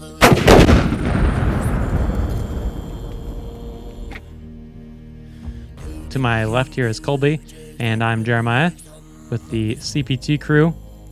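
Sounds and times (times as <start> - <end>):
truck blown up: 0.2 - 3.7
rocket firing: 0.2 - 4.1
speech: 6.1 - 10.8.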